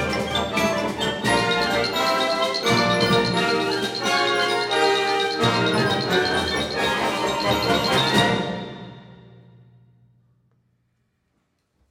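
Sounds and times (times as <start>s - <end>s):
wind band playing: 0.0s - 9.3s.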